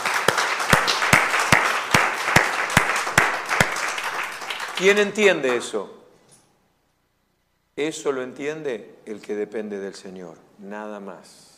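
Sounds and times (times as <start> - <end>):
audience unison clapping on a steady beat: 0.0 - 5.7
speech: 4.8 - 6.0, 7.8 - 11.5.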